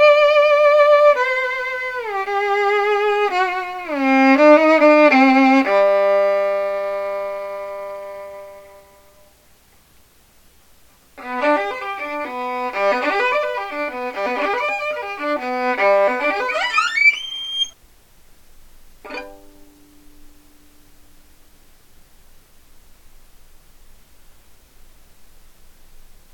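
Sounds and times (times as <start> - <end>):
solo violin: 0.0 - 9.2, 11.2 - 17.8.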